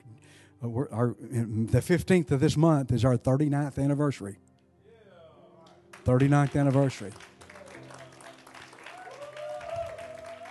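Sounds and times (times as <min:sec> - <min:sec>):
speech: 0:00.6 - 0:04.5, 0:06.0 - 0:07.3
audience clapping: 0:05.7 - 0:10.4.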